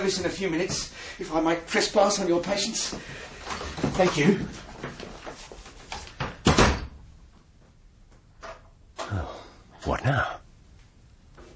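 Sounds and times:
speech: 0.0s - 4.7s, 9.9s - 10.4s
door shutting with a wooden thud: 6.2s - 7.0s.

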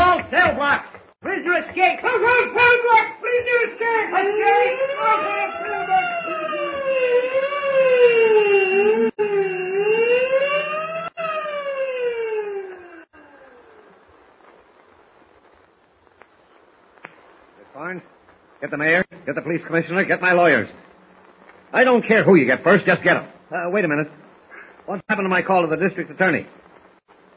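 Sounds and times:
speech: 0.4s - 7.2s, 17.9s - 20.8s, 21.7s - 24.2s, 24.9s - 26.6s
prison alarm bell wailing siren: 3.5s - 14.3s.

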